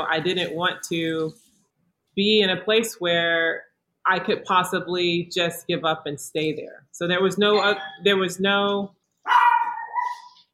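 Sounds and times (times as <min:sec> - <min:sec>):
speech: 0:00.0 - 0:01.4, 0:02.2 - 0:09.4
pet dog barking and yelping: 0:09.2 - 0:10.5.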